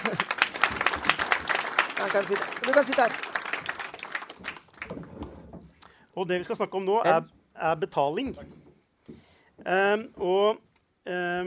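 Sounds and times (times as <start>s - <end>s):
audience applause at a business event: 0.0s - 5.2s
speech: 2.0s - 3.4s, 6.2s - 8.6s, 9.7s - 11.4s.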